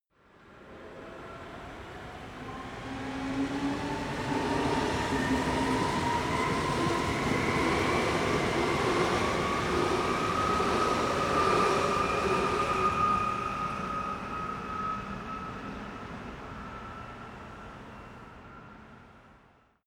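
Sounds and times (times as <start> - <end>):
train accelerating fast in a city: 0.4 - 19.6.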